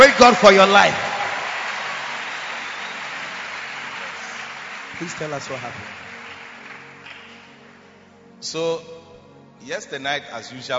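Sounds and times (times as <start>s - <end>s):
speech: 0.0s - 1.0s, 5.0s - 6.1s, 8.4s - 9.0s, 9.6s - 10.7s
audience clapping: 0.0s - 8.0s.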